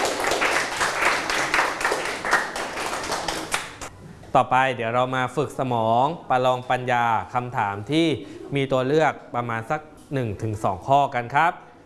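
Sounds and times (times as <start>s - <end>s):
applause: 0.0s - 3.9s
speech: 4.4s - 11.7s.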